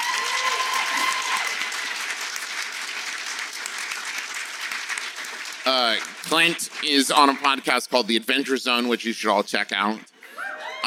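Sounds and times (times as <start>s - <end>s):
live audience applause: 0.0s - 7.9s
speech: 5.7s - 10.1s.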